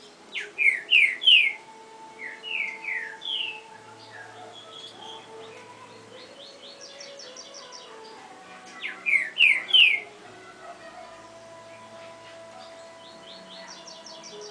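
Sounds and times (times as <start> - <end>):
Double-collared seedeater singing down-slurred and buzzy notes: 0.0 - 14.4.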